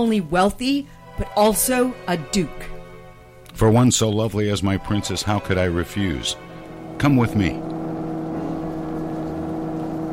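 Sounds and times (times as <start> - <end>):
speech: 0.0 - 2.7, 3.6 - 7.7
electric mole vehicle racing underground, radio drama effect: 6.0 - 10.1.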